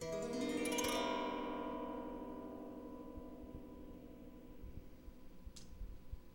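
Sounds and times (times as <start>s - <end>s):
strings: 0.0s - 5.0s.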